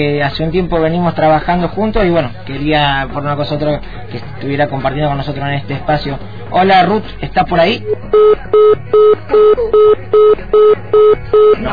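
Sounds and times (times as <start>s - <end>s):
speech: 0.0s - 11.7s
telephone line tone, call not connecting: 8.2s - 11.7s.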